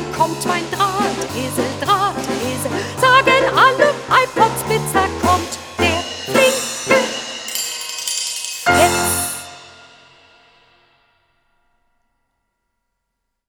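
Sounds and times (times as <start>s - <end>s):
fast music with singing: 0.0s - 7.4s, 8.7s - 9.6s.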